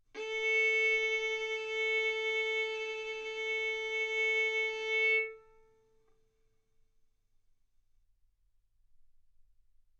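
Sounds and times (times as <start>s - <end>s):
violin bowed arco notes: 0.2s - 6.2s.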